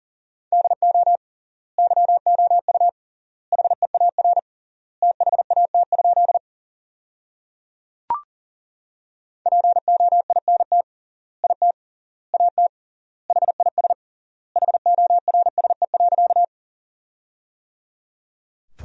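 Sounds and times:
Morse code practice tones: 0:00.6 - 0:01.2, 0:01.8 - 0:02.9, 0:03.6 - 0:04.4, 0:05.0 - 0:06.4, 0:09.5 - 0:10.8, 0:11.4 - 0:11.8, 0:12.4 - 0:12.7, 0:13.3 - 0:14.0, 0:14.6 - 0:16.5.

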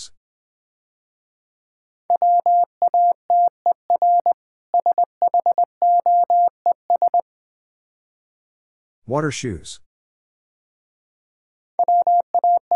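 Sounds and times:
Morse code beeps at 20 wpm: 0:02.1 - 0:07.2, 0:11.8 - 0:12.7
speech: 0:09.1 - 0:09.8.

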